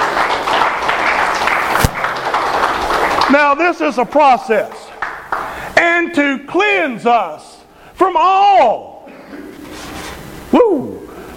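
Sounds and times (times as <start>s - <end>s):
applause: 0.0s - 5.8s
speech: 3.3s - 4.8s, 5.8s - 8.9s, 10.5s - 11.0s.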